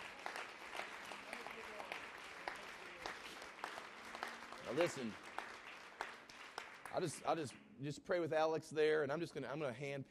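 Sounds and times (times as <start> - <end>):
audience clapping hands: 0.0 - 7.6
speech: 4.7 - 5.3, 6.9 - 10.1.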